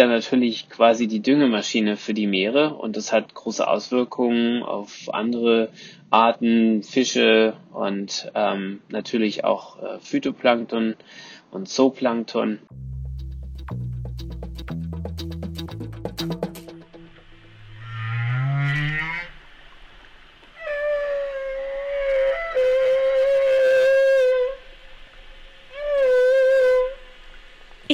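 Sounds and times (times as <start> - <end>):
speech: 0.0 - 12.9
male humpback whale song: 17.0 - 27.9.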